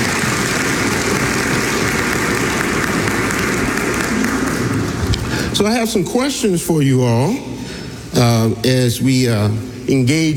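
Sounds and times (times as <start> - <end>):
audience clapping hands in praise: 0.0 - 5.5
speech: 5.6 - 7.6, 8.2 - 10.3.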